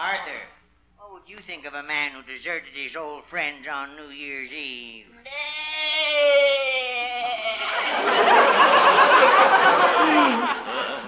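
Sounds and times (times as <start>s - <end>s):
speech: 0.2s - 0.6s, 1.2s - 6.7s
goat bleating: 5.2s - 6.4s
laughter: 7.2s - 11.0s.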